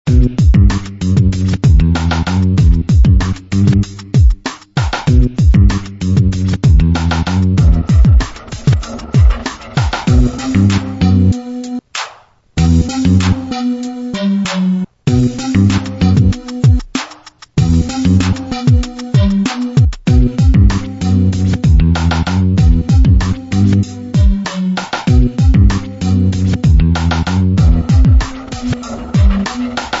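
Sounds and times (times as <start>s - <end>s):
energetic hip hop music: 0.1s - 29.9s.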